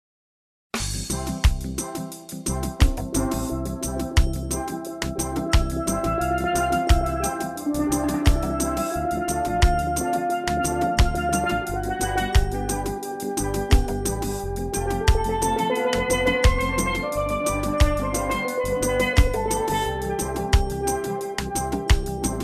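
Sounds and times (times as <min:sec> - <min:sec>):
steel drum: 0:00.9 - 0:22.4.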